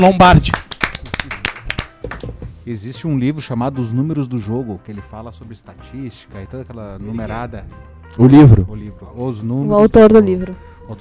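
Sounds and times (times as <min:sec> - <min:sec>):
speech: 0:00.0 - 0:00.6, 0:02.7 - 0:11.0
round of applause from a small group: 0:00.4 - 0:02.3.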